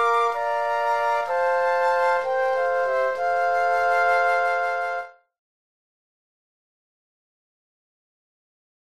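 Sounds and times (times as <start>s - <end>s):
flute quartet: 0.0s - 5.2s.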